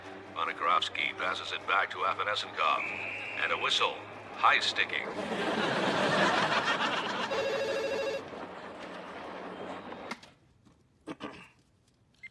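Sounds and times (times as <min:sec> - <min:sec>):
roaring crowd-like din: 0:00.0 - 0:10.2
speech: 0:00.4 - 0:06.9
laughter: 0:04.8 - 0:09.9
telephone ringing: 0:07.3 - 0:08.2.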